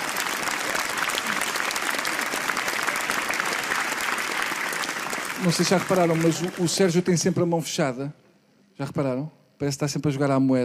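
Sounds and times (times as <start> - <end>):
audience applause: 0.0 - 7.1
speech: 5.4 - 8.2, 8.8 - 10.6.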